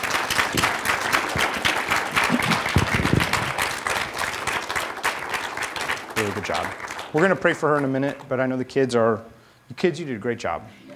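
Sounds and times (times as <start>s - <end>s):
round of applause: 0.0s - 8.3s
speech: 6.2s - 10.9s.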